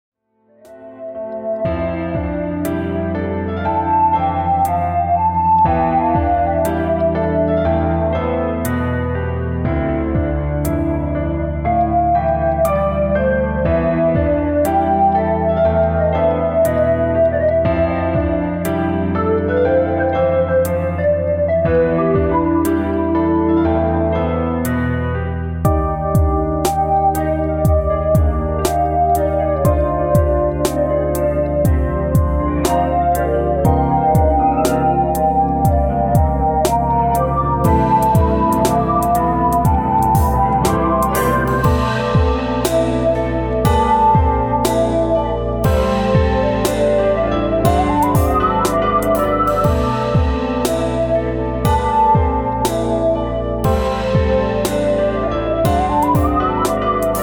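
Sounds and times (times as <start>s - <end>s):
piano: 0.3s - 57.2s.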